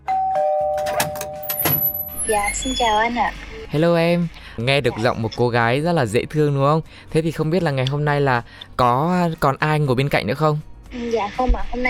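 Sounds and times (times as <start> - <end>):
doorbell chime: 0.0 - 3.0
speech: 2.3 - 11.8.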